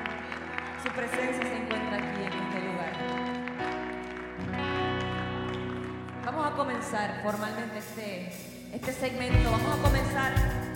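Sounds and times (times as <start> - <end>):
audience applauding: 0.0 - 6.6
speech: 0.9 - 2.7, 6.6 - 10.7.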